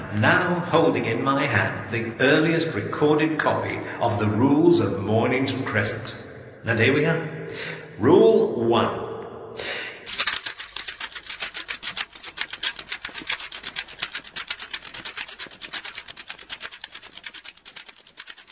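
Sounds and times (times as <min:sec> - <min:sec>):
speech: 0:00.1 - 0:09.0
tape end flapping on a reel spool: 0:10.1 - 0:18.5.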